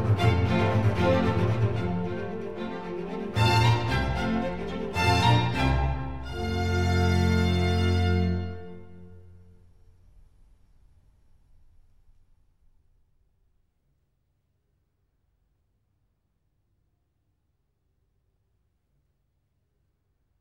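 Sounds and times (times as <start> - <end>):
classical concerto minuet: 0.0 - 9.4.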